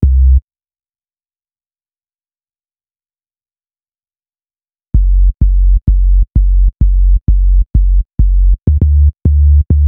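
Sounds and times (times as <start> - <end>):
hip-hop bass: 0.0 - 0.4, 5.0 - 9.8.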